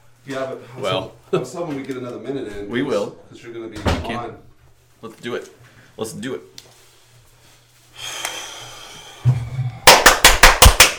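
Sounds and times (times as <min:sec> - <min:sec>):
speech: 0:00.2 - 0:06.7
triple hand clap: 0:09.8 - 0:10.9.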